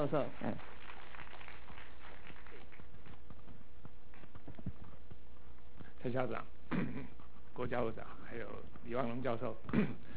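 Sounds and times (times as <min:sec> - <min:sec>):
speech: 0:00.0 - 0:00.7, 0:06.0 - 0:10.1
audience applause: 0:00.3 - 0:02.9.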